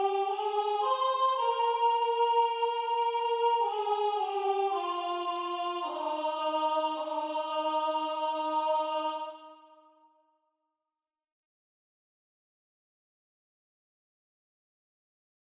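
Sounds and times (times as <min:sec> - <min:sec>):
choir of women's voices: 0:00.0 - 0:10.0.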